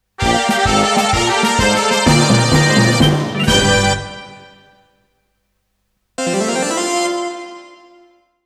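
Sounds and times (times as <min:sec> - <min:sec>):
fanfare: 0:00.2 - 0:05.0, 0:06.2 - 0:08.1.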